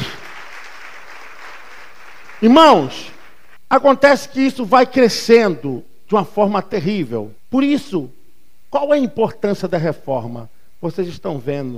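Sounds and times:
audience applause: 0:00.0 - 0:03.5
speech: 0:02.4 - 0:03.1, 0:03.7 - 0:11.7.

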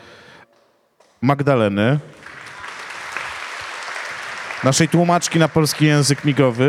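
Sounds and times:
speech: 0:01.2 - 0:02.2, 0:04.6 - 0:06.6
audience applause: 0:02.1 - 0:06.6.

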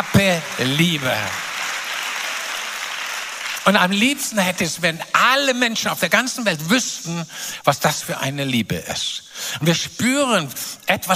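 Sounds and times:
audience applause: 0:00.0 - 0:04.4
speech: 0:00.2 - 0:01.4, 0:03.6 - 0:11.1.

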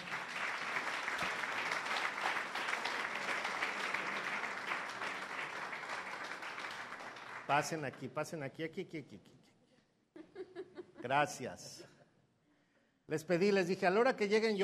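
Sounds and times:
welcoming applause: 0:00.0 - 0:07.9
speech: 0:07.5 - 0:09.4, 0:11.0 - 0:11.9, 0:13.1 - 0:14.6.

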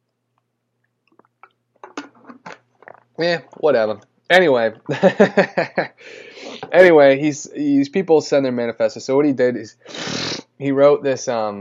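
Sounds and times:
low steady hum: 0:00.0 - 0:09.8
wet mouth clicks: 0:00.8 - 0:04.1
gulp and swallow of water: 0:01.1 - 0:03.7
speech: 0:03.2 - 0:11.5.

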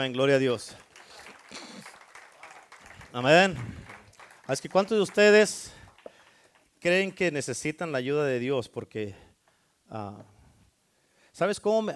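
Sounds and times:
speech: 0:00.0 - 0:00.8, 0:03.1 - 0:03.9, 0:04.5 - 0:05.8, 0:06.8 - 0:09.2, 0:09.9 - 0:10.3, 0:11.4 - 0:11.9
audience applause: 0:00.0 - 0:07.2.

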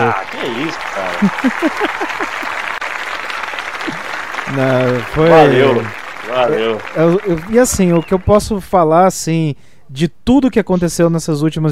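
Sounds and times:
laughter: 0:00.0 - 0:02.8, 0:03.8 - 0:08.1
applause: 0:00.0 - 0:08.5
speech: 0:00.1 - 0:02.6, 0:03.9 - 0:11.7.

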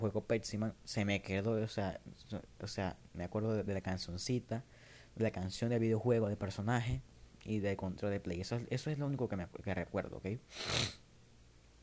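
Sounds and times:
speech: 0:00.0 - 0:11.0
sniff through a stuffy, congested nose: 0:10.5 - 0:11.0.

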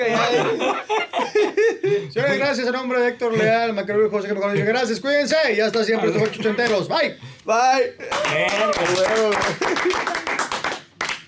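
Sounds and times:
laughter: 0:00.0 - 0:02.6, 0:05.9 - 0:06.9, 0:09.5 - 0:10.3
speech: 0:02.4 - 0:10.0
hosts clapping: 0:05.7 - 0:06.9, 0:08.0 - 0:11.2.

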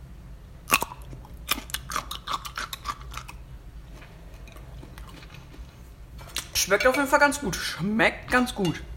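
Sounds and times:
crunching a pickled gherkin: 0:00.6 - 0:05.7
soft chewing: 0:00.7 - 0:06.5
speech: 0:06.6 - 0:08.9.

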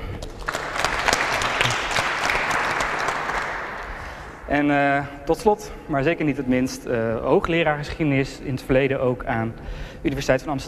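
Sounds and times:
audience applause: 0:00.2 - 0:04.4
speech: 0:04.5 - 0:10.6.

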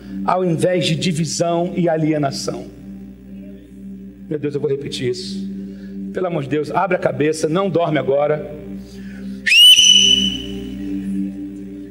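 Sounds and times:
speech: 0:00.2 - 0:02.8, 0:04.3 - 0:05.5, 0:06.1 - 0:08.9
loud human whistle: 0:09.4 - 0:10.8.

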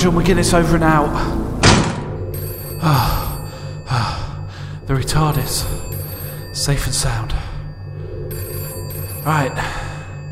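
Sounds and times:
speech: 0:00.0 - 0:01.4, 0:02.8 - 0:03.2, 0:04.9 - 0:05.8, 0:06.6 - 0:07.4, 0:09.2 - 0:09.8
phone ringing: 0:02.1 - 0:10.3.

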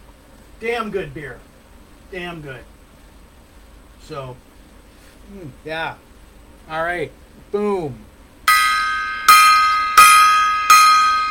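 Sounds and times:
speech: 0:00.6 - 0:01.5, 0:02.1 - 0:02.7, 0:04.0 - 0:04.5, 0:05.3 - 0:06.1, 0:06.7 - 0:08.1
gong being struck: 0:08.5 - 0:11.3.

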